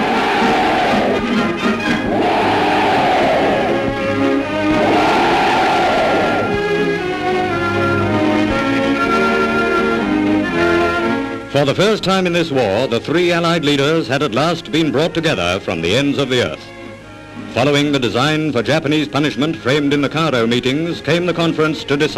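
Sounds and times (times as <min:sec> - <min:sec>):
large crowd of soldiers cheering: 0:00.0 - 0:07.2
steady tonal backdrop: 0:00.0 - 0:19.2
speech: 0:11.6 - 0:16.8, 0:17.5 - 0:22.1.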